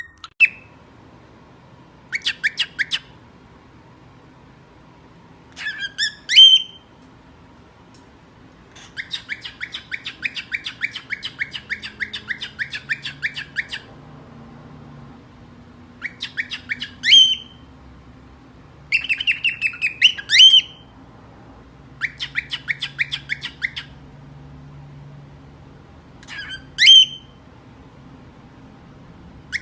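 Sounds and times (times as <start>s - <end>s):
cockatiel chirping and squawking: 0.0s - 0.7s, 2.1s - 3.1s, 5.6s - 6.8s, 8.8s - 13.9s, 16.0s - 17.6s, 18.9s - 20.8s, 22.0s - 24.0s, 26.2s - 27.4s.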